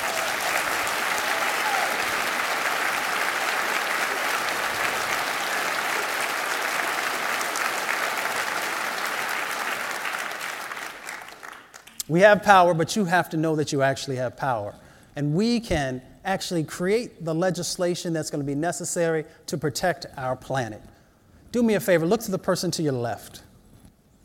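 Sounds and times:
audience applause: 0.0s - 12.0s
speech: 12.1s - 20.9s, 21.5s - 23.5s.

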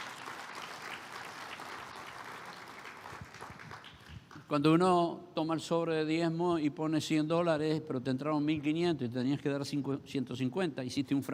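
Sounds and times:
audience applause: 0.0s - 4.2s
speech: 4.5s - 11.3s.

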